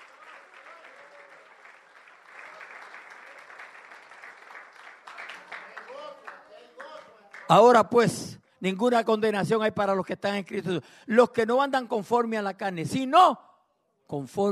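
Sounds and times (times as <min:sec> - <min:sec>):
audience applause: 0:00.0 - 0:07.7
speech: 0:07.5 - 0:13.5, 0:14.1 - 0:14.4.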